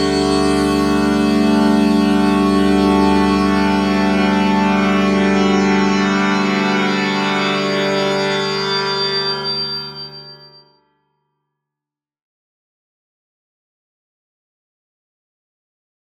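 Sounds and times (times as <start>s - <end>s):
long chord: 0.0s - 10.6s.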